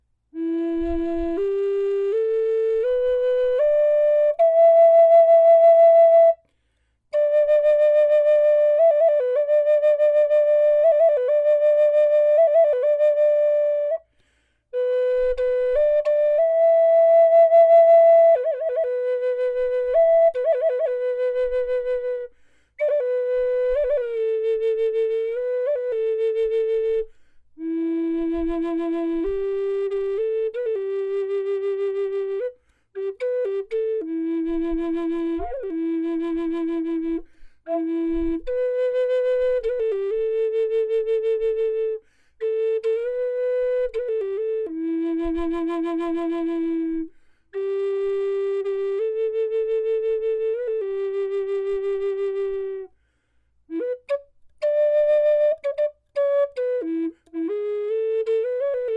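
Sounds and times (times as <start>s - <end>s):
natural wood flute: 0.0s - 58.9s.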